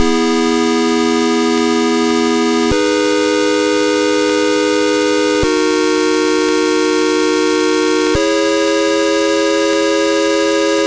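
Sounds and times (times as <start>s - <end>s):
Apple II chiptune synth chord: 0.0s - 10.8s.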